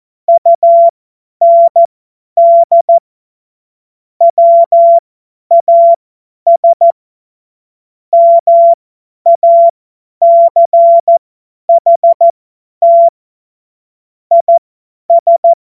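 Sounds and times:
CW Morse code beeps: 0.3 - 3.0, 4.2 - 7.0, 8.1 - 13.1, 14.3 - 15.5.

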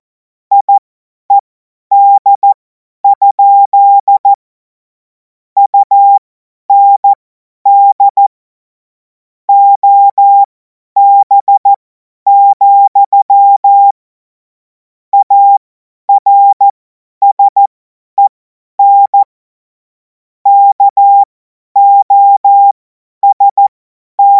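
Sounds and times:
CW Morse code beeps: 0.5 - 4.3, 5.6 - 8.2, 9.5 - 14.0, 15.2 - 19.3, 20.5 - 24.3.

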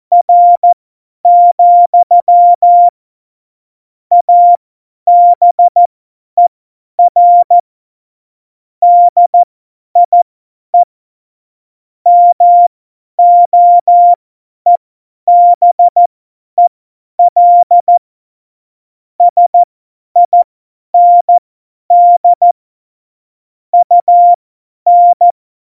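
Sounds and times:
CW Morse code beeps: 0.1 - 2.9, 4.1 - 5.8, 7.0 - 7.6, 8.8 - 10.2, 12.1 - 16.1, 17.2 - 18.0, 19.2 - 20.4, 21.0 - 22.6, 23.8 - 25.3.

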